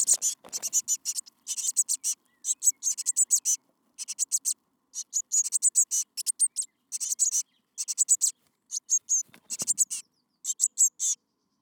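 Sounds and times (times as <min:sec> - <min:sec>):
Eurasian blue tit calling: 0:00.0 - 0:11.2.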